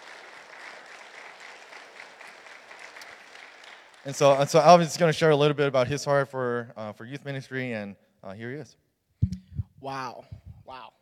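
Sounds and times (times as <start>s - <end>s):
audience applauding: 0.0s - 4.6s
speech: 4.0s - 8.8s, 9.8s - 10.8s.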